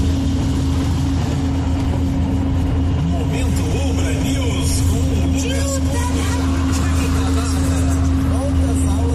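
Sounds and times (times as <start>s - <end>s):
car engine and road rumble on a potholed road: 0.0s - 9.1s
low hum: 0.0s - 9.1s.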